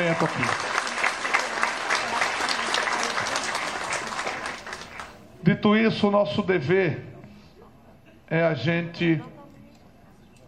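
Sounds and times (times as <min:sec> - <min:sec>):
audience applause: 0:00.0 - 0:05.2
speech: 0:00.1 - 0:00.7, 0:05.4 - 0:07.1, 0:08.3 - 0:09.4.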